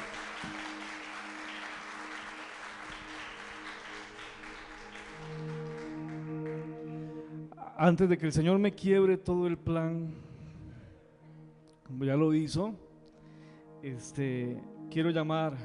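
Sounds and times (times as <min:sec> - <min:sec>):
large crowd applauding: 0:00.0 - 0:07.3
organ-like chords: 0:00.0 - 0:15.6
speech: 0:07.8 - 0:10.3, 0:11.9 - 0:12.8, 0:13.8 - 0:15.6.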